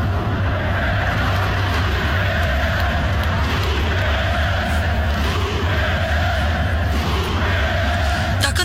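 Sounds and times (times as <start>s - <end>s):
football fans chanting in stadium: 0.0s - 8.6s.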